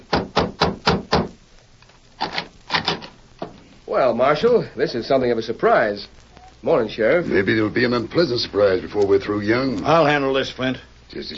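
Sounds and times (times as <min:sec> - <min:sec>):
knuckles knocking on a wooden door: 0:00.1 - 0:01.4
speech: 0:03.9 - 0:11.3.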